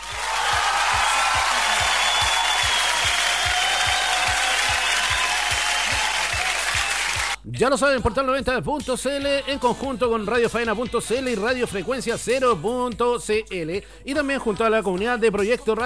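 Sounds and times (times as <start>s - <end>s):
applause on a radio program: 0.0s - 7.4s
speech: 7.6s - 15.8s.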